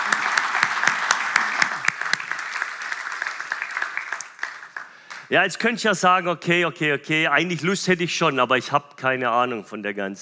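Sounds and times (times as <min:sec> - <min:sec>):
audience applause: 0:00.0 - 0:05.3
speech: 0:05.3 - 0:10.2.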